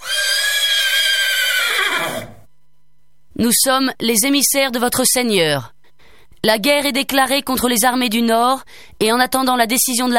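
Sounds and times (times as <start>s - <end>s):
horse neighing: 0.0s - 2.4s
speech: 3.4s - 5.8s, 6.4s - 10.1s.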